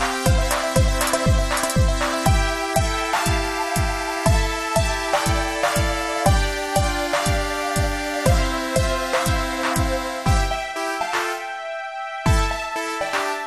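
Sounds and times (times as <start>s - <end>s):
8 Bit music: 0.0s - 13.4s.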